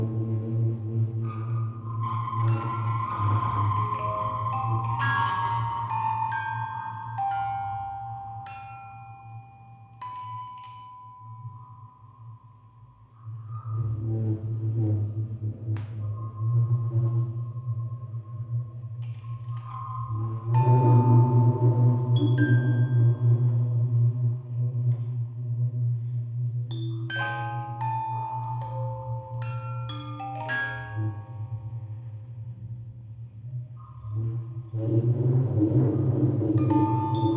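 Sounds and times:
field recording ambience: 0.0 - 37.3
quartet of music boxes playing: 4.0 - 11.9, 26.7 - 31.9, 36.6 - 37.3.

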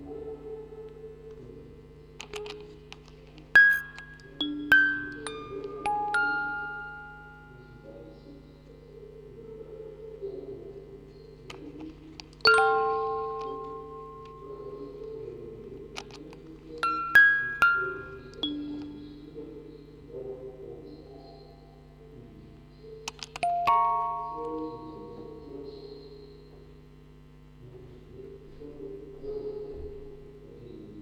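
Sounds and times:
four music boxes playing: 2.2 - 8.0, 11.6 - 19.4, 23.1 - 26.0.

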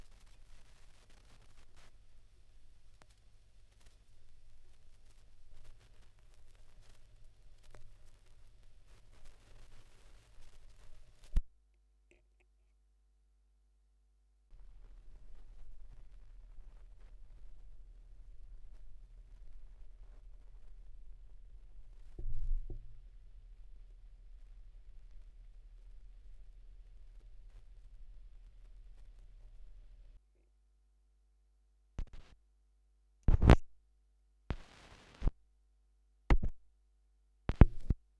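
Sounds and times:
vinyl record noise at 16 rpm: 0.0 - 11.5, 14.6 - 30.2, 32.0 - 32.4, 33.3 - 33.6, 34.5 - 35.4, 37.5 - 38.0.

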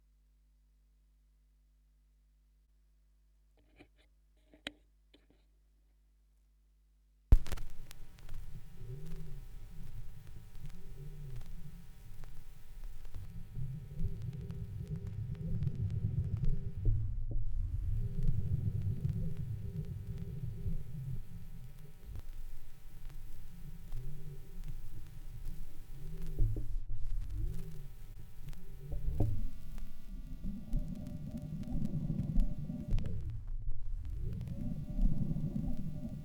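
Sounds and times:
vinyl record noise: 7.3 - 36.2.

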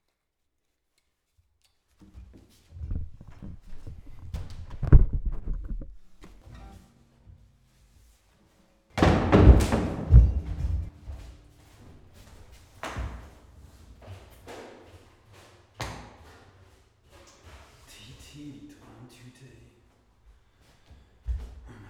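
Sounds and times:
background noise in Lichtenberg, Brandenburg: 0.0 - 21.8.

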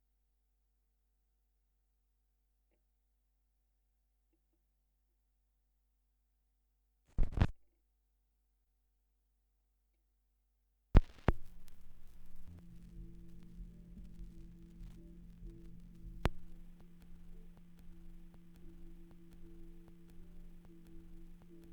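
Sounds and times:
78rpm record surface noise: 7.2 - 7.6, 11.0 - 21.7.

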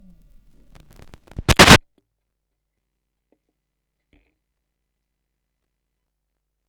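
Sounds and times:
vinyl record noise: 0.2 - 1.8.

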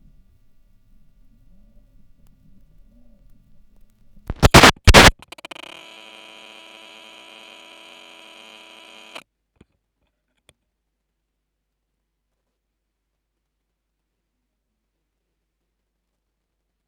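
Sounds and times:
vinyl record noise: 4.3 - 9.2.

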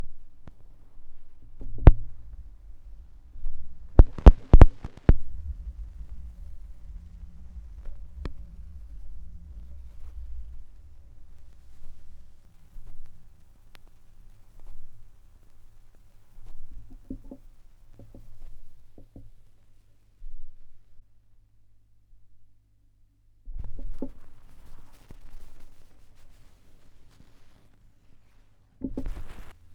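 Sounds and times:
vinyl record noise: 0.1 - 17.5, 23.6 - 29.7.

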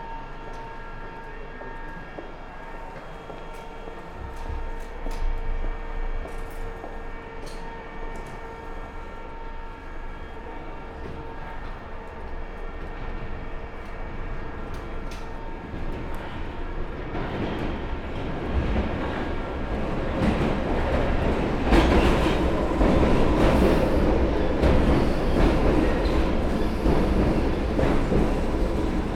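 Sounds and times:
London Underground District Line train: 0.0 - 29.1.

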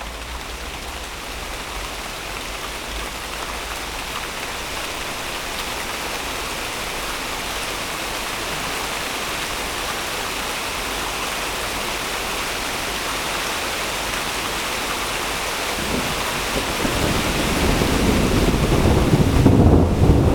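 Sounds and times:
rain: 0.0 - 20.3
thunderstorm: 15.7 - 20.3.

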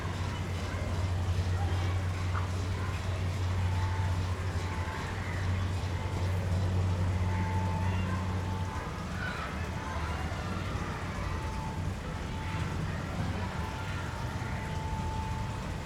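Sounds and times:
street ambience on Boudha Road in Kathmandu Nepal: 0.0 - 15.8.

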